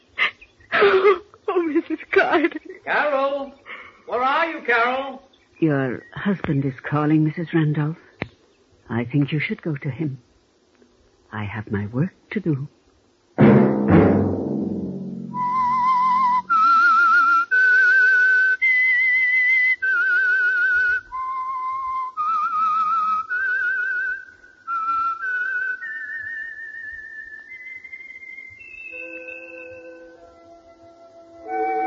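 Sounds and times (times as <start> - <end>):
speech: 0.8 - 8.1, 8.9 - 10.3, 11.3 - 12.8
low struck tone: 13.4 - 16.5
solo whistled tune as a radio program signal: 15.3 - 31.8.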